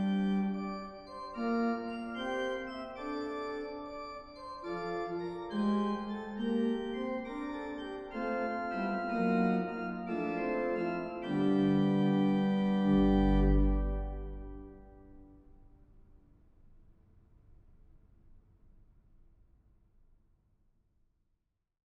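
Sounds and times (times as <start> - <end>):
organist playing a jig: 0.0 - 15.2.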